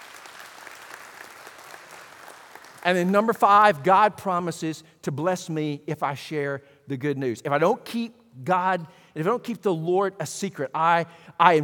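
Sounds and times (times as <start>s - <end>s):
church congregation hand-clapping praise at a morning service: 0.0s - 3.8s
speech: 2.8s - 11.6s.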